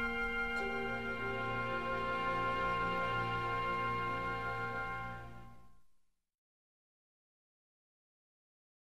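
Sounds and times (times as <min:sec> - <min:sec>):
choir singing: 0:00.0 - 0:05.1.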